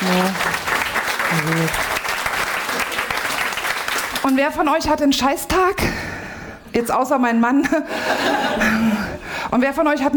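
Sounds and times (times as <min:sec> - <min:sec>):
audience clapping: 0:00.0 - 0:04.7
speech: 0:01.4 - 0:02.0, 0:04.3 - 0:06.0, 0:06.8 - 0:10.1.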